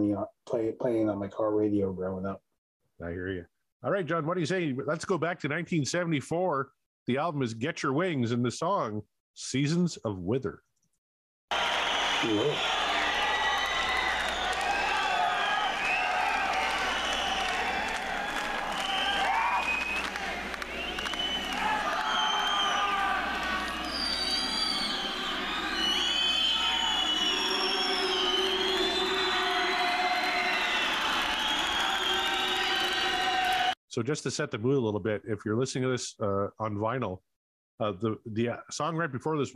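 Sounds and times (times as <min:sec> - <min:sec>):
speech: 0:00.0 - 0:02.4, 0:03.0 - 0:10.7, 0:12.2 - 0:12.8, 0:34.0 - 0:39.5
crowd cheering: 0:11.5 - 0:33.8.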